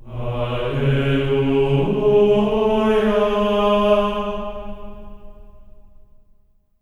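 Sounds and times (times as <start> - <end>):
voice singing alleluia on C sharp 4: 0.0 - 5.4.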